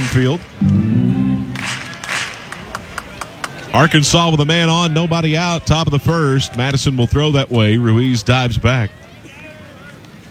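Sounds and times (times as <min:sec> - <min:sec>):
scattered clapping: 0:00.0 - 0:00.8, 0:01.6 - 0:03.9, 0:06.3 - 0:08.2
speech: 0:00.1 - 0:01.2, 0:03.7 - 0:09.0
crowd cheering at a college baseball game in Lexington: 0:00.4 - 0:10.2.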